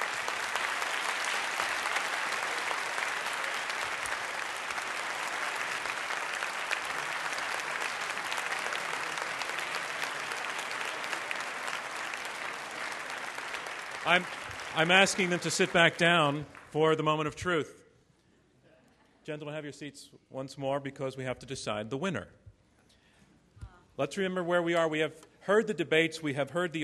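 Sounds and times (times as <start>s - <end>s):
crowd clapping for the panel: 0.0s - 17.3s
speech: 14.1s - 17.8s, 19.2s - 22.4s, 24.0s - 26.8s.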